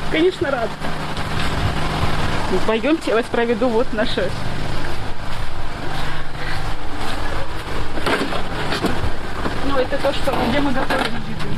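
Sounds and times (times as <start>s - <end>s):
electric power generator running at a site with no water supply: 0.0s - 11.5s
speech: 0.1s - 1.0s, 2.5s - 4.6s, 9.8s - 11.5s.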